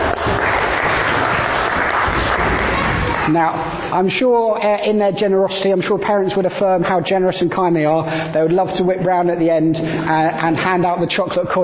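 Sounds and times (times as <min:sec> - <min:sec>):
audience applause: 0:00.0 - 0:03.9
speech: 0:03.3 - 0:11.6.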